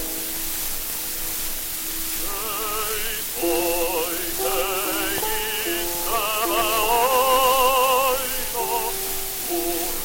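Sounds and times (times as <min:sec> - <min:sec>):
gramophone playing: 0:02.2 - 0:10.0.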